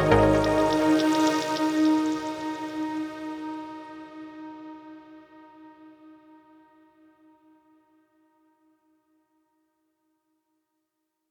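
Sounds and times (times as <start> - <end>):
saw pluck trance theme: 0.0 - 2.4.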